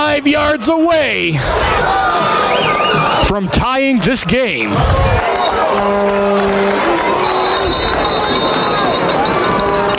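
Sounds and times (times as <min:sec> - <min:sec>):
stadium crowd cheering: 0:00.0 - 0:09.9
speech: 0:00.2 - 0:06.8
whistles: 0:02.5 - 0:03.3, 0:07.1 - 0:09.2.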